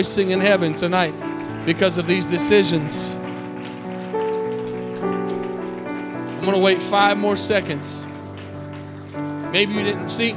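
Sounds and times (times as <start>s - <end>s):
speech: 0.0s - 3.3s, 6.4s - 8.1s, 9.5s - 10.3s
audience clapping: 0.0s - 10.3s.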